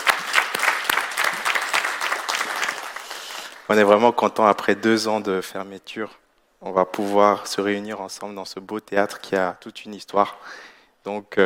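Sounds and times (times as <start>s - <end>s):
audience applause: 0.0s - 3.7s
speech: 3.7s - 11.4s.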